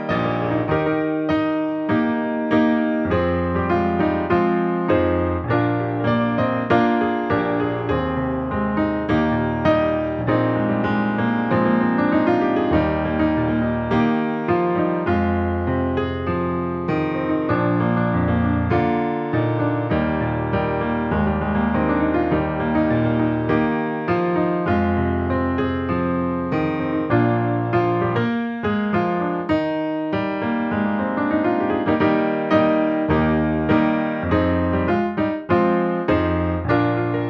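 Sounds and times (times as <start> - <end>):
live piano accompaniment for a choir: 0.0 - 37.2.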